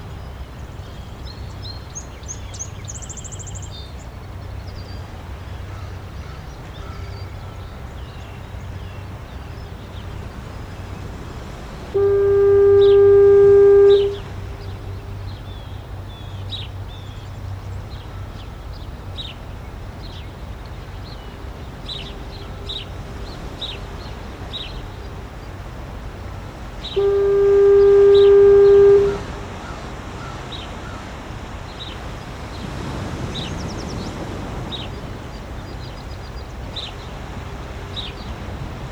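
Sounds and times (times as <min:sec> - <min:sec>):
foghorn at Portland Head Light: 0:06.9 - 0:32.2, 0:34.4 - 0:38.8.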